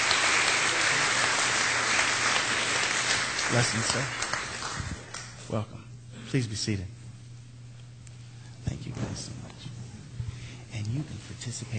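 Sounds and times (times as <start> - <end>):
church congregation applauding to welcome a family: 0.0 - 5.4
speech: 3.5 - 4.3, 5.5 - 7.0, 8.7 - 9.8, 10.8 - 11.7.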